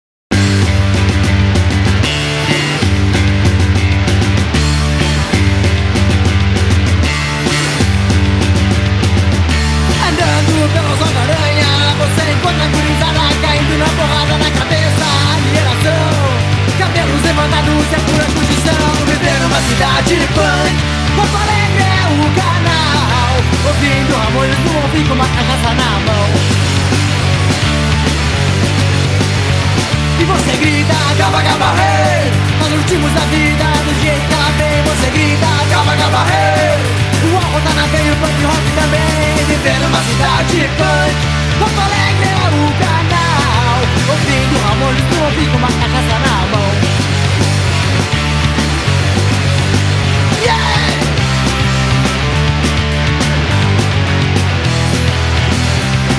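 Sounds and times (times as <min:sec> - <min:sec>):
punk music: 0:00.3 - 0:56.1.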